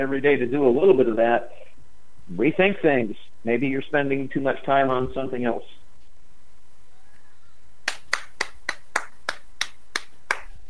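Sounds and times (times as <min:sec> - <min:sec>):
speech: 0:00.0 - 0:01.7, 0:02.3 - 0:05.8
one person standing and applauding: 0:07.8 - 0:10.6.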